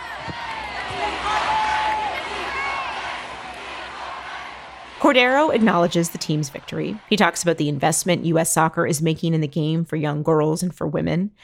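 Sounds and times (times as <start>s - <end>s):
shouts and whoops: 0.0s - 4.9s
large crowd chanting: 0.0s - 8.4s
speech: 5.1s - 11.4s.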